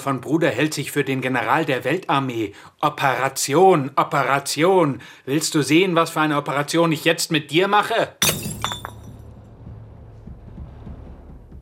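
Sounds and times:
speech: 0.0s - 8.6s
beer bottle smashing onto a floor: 8.2s - 9.2s
low steady rumble: 8.3s - 11.6s.

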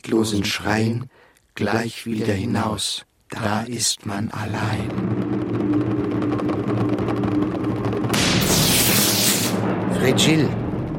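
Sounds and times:
speech: 0.0s - 5.4s, 10.1s - 10.6s
thunder: 4.6s - 10.9s.

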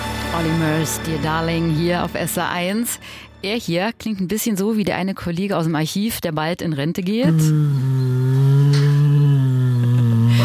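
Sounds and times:
speech: 0.3s - 8.0s
Asiatic black bear humming: 7.2s - 10.4s.

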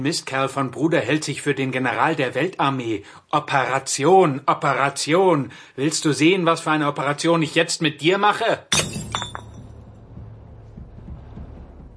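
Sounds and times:
speech: 0.0s - 9.0s
beer bottle being smashed: 8.7s - 9.8s
low steady rumbling noise: 9.4s - 11.9s.

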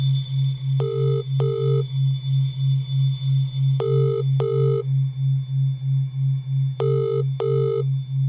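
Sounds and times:
constant low hum: 0.0s - 8.2s
phone call ringing with no answer: 0.8s - 1.8s, 3.8s - 4.8s, 6.8s - 7.8s.

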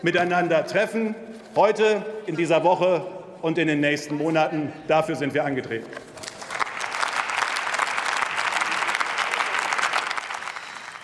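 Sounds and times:
speech: 0.0s - 6.0s
parliamentary applause: 6.2s - 11.0s.

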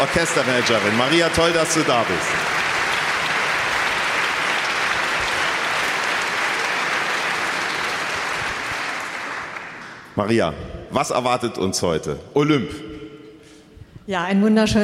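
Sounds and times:
speech: 0.0s - 2.7s, 10.2s - 13.0s, 14.1s - 14.8s
friendly audience applause: 0.0s - 10.2s.

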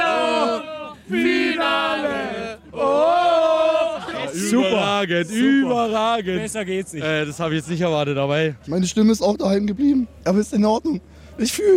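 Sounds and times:
crowd cheering: 0.0s - 5.8s
speech: 4.5s - 11.7s.

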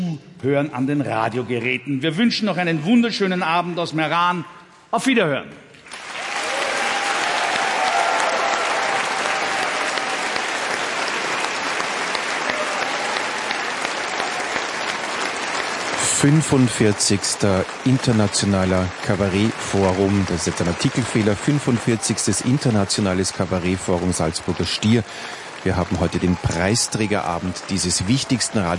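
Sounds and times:
speech: 0.2s - 5.6s, 16.2s - 28.7s
large indoor audience applause in concert hall: 5.9s - 28.7s.

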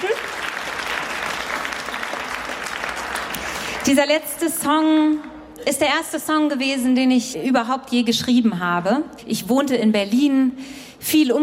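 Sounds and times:
audience applause: 0.0s - 4.0s
speech: 3.9s - 11.4s.

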